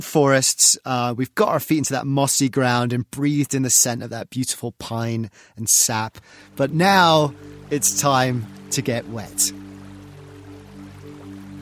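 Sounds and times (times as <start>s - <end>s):
speech: 0.0s - 9.6s
gentle burble of water in a mature river: 6.3s - 11.5s.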